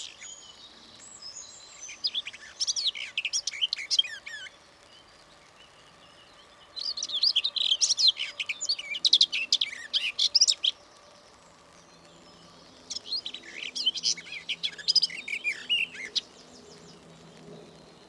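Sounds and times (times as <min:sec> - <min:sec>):
garden warbler song: 0:00.0 - 0:18.0.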